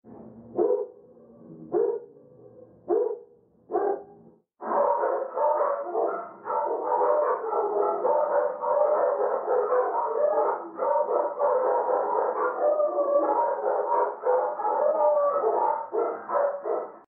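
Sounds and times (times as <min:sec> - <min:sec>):
dogs in the background: 0:00.5 - 0:02.2, 0:02.8 - 0:17.0.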